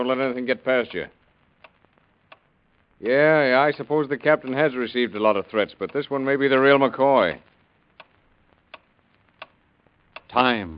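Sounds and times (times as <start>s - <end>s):
speech: 0.0s - 1.2s, 3.0s - 7.5s, 10.3s - 10.7s
clock ticking: 1.6s - 2.5s, 3.5s - 4.6s, 5.6s - 6.1s, 8.0s - 10.5s.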